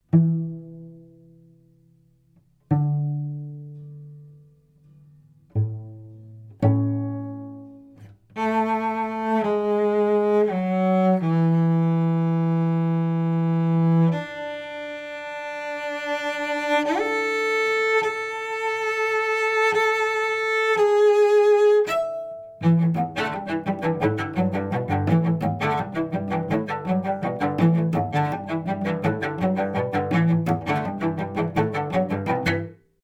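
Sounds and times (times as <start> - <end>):
cello: 0.0 - 33.0.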